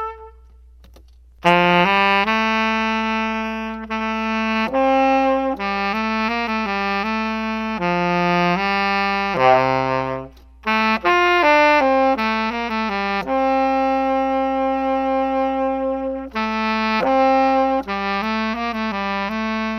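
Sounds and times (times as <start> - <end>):
tenor saxophone solo: 0.0 - 0.6, 1.4 - 19.7.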